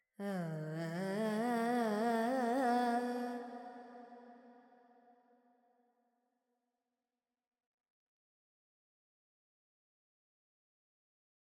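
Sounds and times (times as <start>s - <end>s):
Carnatic woman singing alaps in Phrygian mode: 0.2s - 3.7s.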